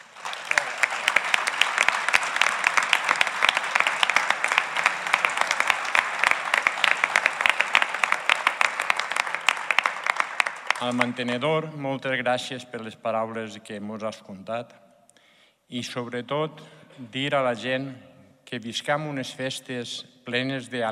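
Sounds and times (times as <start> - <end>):
audience applause: 0.0 - 11.4
speech: 10.8 - 14.8, 15.7 - 20.9.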